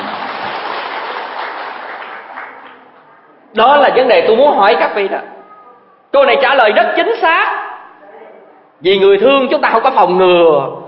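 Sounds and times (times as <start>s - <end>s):
audience applause at a talk: 0.0s - 3.2s
speech: 3.6s - 5.3s, 6.1s - 7.6s, 8.8s - 10.8s.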